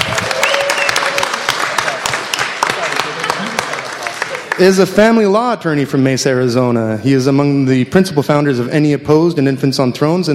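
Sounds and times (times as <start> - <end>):
audience applause: 0.0 - 4.8
speech: 4.6 - 10.3.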